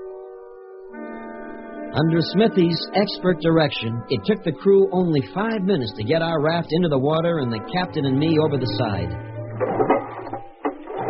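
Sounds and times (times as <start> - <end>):
speech: 1.9 - 9.7
outboard motor being started: 9.5 - 11.0.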